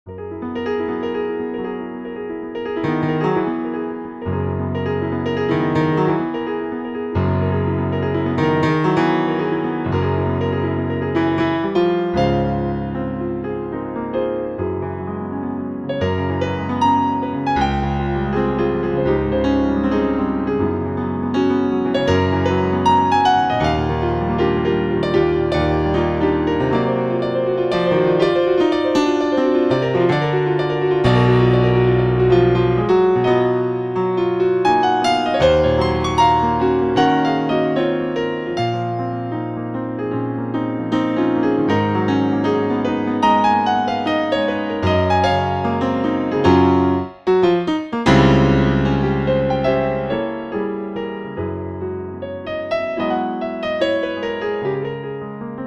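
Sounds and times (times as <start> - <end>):
Bosendorfer piano improvisation: 0.0 - 55.6.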